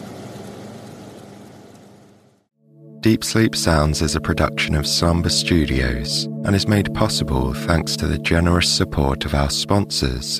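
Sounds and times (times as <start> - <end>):
air conditioner running: 0.0 - 2.4
speech: 3.0 - 10.3.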